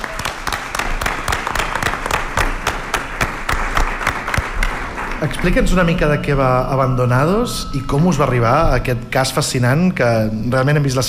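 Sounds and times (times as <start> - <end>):
audience applause: 0.0 - 5.9
speech: 5.2 - 11.0.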